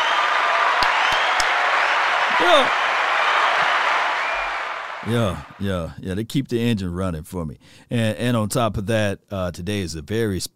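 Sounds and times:
applause: 0.0s - 5.6s
speech: 2.4s - 2.8s, 5.0s - 10.5s.

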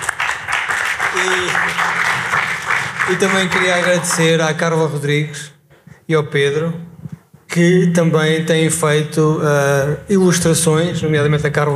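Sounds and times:
audience applause: 0.0s - 4.6s
speech: 1.2s - 2.3s, 3.1s - 6.9s, 7.6s - 11.7s.

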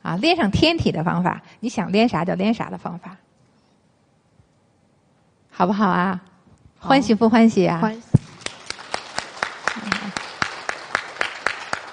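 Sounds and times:
speech: 0.2s - 3.3s, 5.6s - 8.2s
audience applause: 8.2s - 11.9s.

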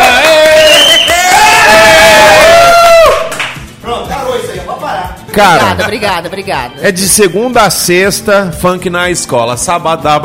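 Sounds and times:
crowd applauding enthusiastically: 0.0s - 3.7s
speech: 5.4s - 10.2s.

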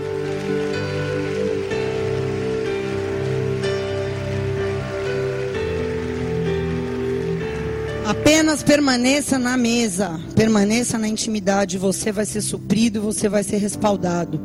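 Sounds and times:
audience applauding: 0.0s - 10.0s
speech: 8.1s - 14.4s.

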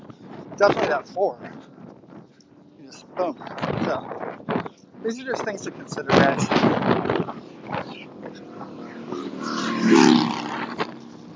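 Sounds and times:
wind blowing loudly into the microphone: 0.0s - 11.3s
speech: 0.6s - 1.8s, 3.2s - 4.3s, 5.0s - 10.1s.

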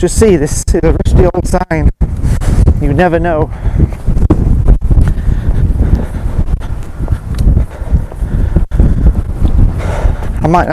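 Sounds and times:
speech: 0.0s - 4.0s, 10.4s - 10.7s
wind blowing on microphone outdoors: 0.0s - 10.7s.

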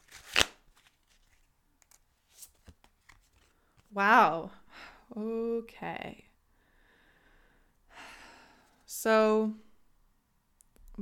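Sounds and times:
tarot card being pulled from a deck: 0.0s - 3.9s
speech: 4.0s - 6.3s, 9.0s - 9.7s.

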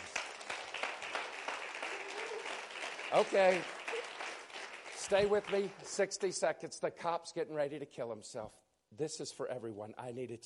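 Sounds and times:
audience applause: 0.0s - 6.0s
speech: 3.1s - 3.8s, 5.1s - 10.4s.

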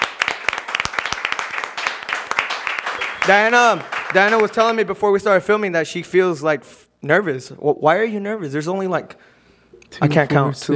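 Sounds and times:
small audience of about eight people clapping: 0.0s - 4.9s
speech: 3.2s - 9.3s, 9.9s - 10.7s.

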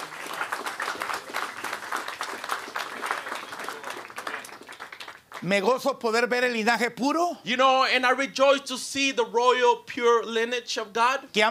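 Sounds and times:
audience applauding: 0.0s - 5.7s
speech: 5.4s - 11.4s.

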